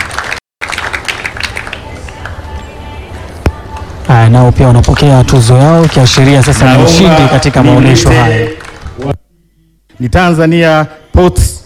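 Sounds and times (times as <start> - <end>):
audience applause for the President of Mozambique at an awards ceremony: 0.0 - 2.0, 5.6 - 9.1
speech: 4.2 - 9.2, 10.0 - 11.6.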